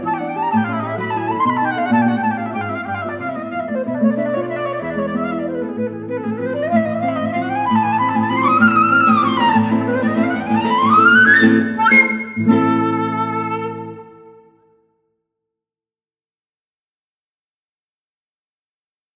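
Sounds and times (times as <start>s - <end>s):
sonata: 0.0s - 14.8s.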